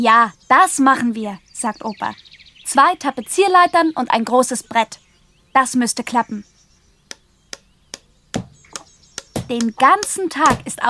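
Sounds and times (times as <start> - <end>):
speech: 0.0 - 5.0, 5.6 - 6.5, 9.5 - 10.8
hammer blows on wood: 8.0 - 10.8.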